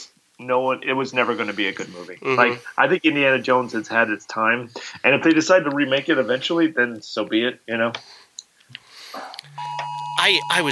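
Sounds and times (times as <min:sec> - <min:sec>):
speech: 0:00.4 - 0:08.2, 0:10.2 - 0:10.6
phone emergency alert tone for a flash flood warning: 0:09.5 - 0:10.6.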